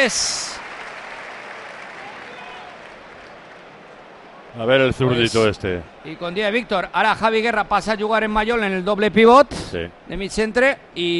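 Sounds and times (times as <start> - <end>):
speech: 0.0 - 0.4, 4.6 - 11.1
stadium crowd applause: 0.0 - 7.1.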